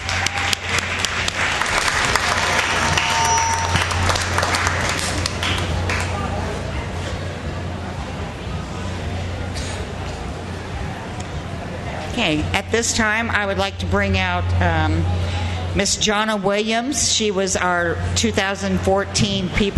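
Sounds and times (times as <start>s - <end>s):
audience applause: 0.0s - 6.6s
low steady hum: 0.0s - 19.7s
speech: 12.2s - 19.7s.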